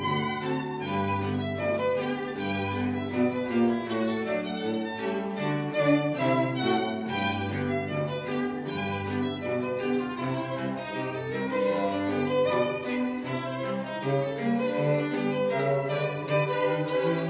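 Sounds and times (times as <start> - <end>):
string quartet playing a rag: 0.0 - 17.2.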